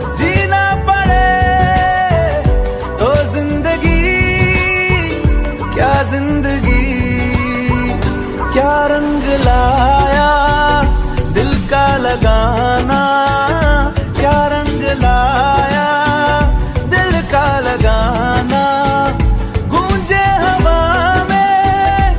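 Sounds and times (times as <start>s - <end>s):
romantic Bollywood ringtone: 0.0s - 22.0s.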